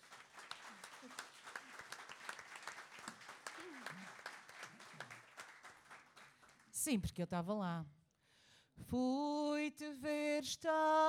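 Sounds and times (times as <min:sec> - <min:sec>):
audience applause: 0:00.0 - 0:06.7
speech: 0:06.8 - 0:08.0, 0:08.9 - 0:11.0.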